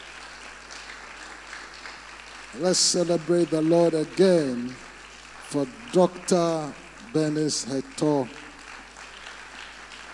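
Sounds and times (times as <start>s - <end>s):
crowd clapping: 0.0s - 10.1s
speech: 2.5s - 4.9s, 5.5s - 8.5s.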